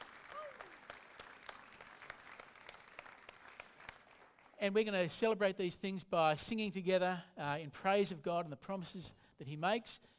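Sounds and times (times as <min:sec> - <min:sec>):
audience applause: 0:00.0 - 0:04.6
speech: 0:04.6 - 0:10.1.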